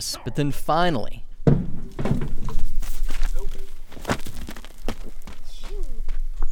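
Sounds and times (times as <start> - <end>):
speech: 0.0 - 1.3
sheep hopping out of a trailer: 1.5 - 5.0.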